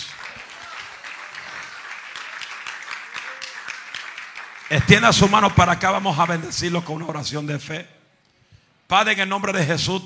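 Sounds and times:
audience applause: 0.0 - 7.0
speech: 4.7 - 8.0, 8.9 - 10.0.

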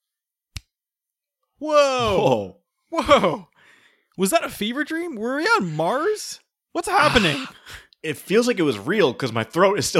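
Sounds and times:
finger snap: 0.5 - 0.8
speech: 1.6 - 3.5, 4.2 - 9.9.

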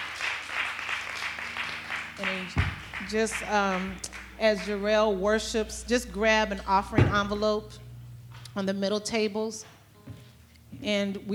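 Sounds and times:
audience applause: 0.0 - 4.8
speech: 2.2 - 7.8, 8.6 - 9.7, 10.8 - 11.3.

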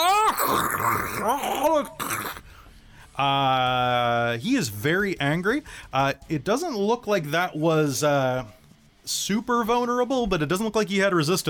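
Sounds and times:
voice imitating an angry roar: 0.0 - 2.4
speech: 0.5 - 2.2, 3.2 - 11.4.

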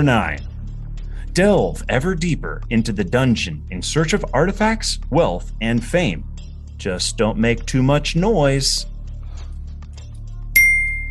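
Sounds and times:
speech: 0.0 - 0.5, 1.4 - 8.9
quiz buzzer ding: 10.6 - 11.0.

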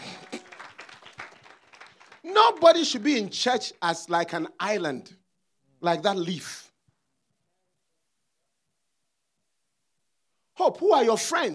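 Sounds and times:
crowd clapping: 0.0 - 3.1
speech: 2.3 - 5.2, 5.8 - 6.7, 10.6 - 11.5.

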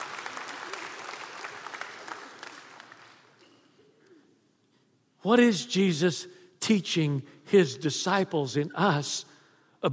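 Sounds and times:
audience applause: 0.0 - 3.4
speech: 5.2 - 9.9.

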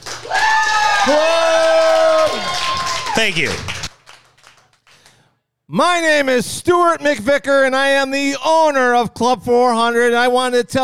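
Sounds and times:
audience cheering: 0.0 - 3.9
audience clapping: 0.0 - 5.3
speech: 3.2 - 3.8, 5.7 - 10.8.

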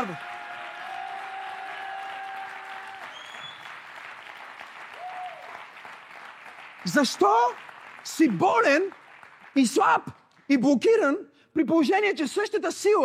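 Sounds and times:
audience applauding: 0.0 - 10.5
speech: 6.8 - 9.0, 9.6 - 13.0.

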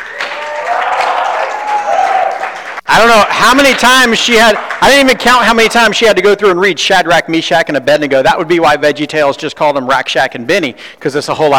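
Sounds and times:
audience applause: 0.0 - 5.2
speech: 2.9 - 11.5.

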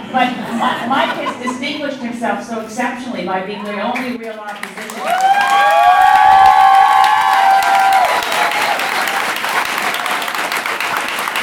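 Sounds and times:
speech: 0.1 - 6.0
crowd clapping: 4.5 - 11.4.

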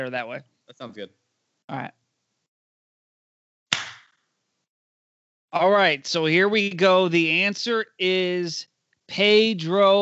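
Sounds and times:
speech: 0.0 - 2.0, 5.5 - 9.9
single hand clap for edit sync: 3.7 - 4.1.

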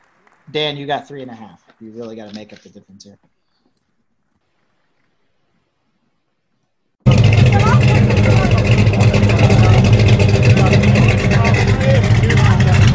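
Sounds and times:
speech: 0.5 - 3.4
drag car or hot rod cammed pushrod V8 engine rumbling: 7.0 - 12.9.

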